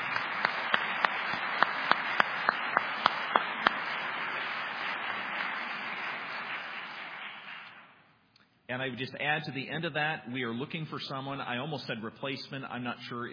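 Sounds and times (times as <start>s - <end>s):
crowd applauding: 0.0s - 8.0s
speech: 8.8s - 13.3s.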